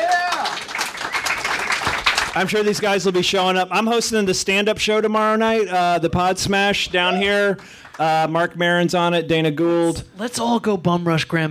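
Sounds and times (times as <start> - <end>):
audience applause: 0.0 - 2.9
speech: 2.4 - 11.4.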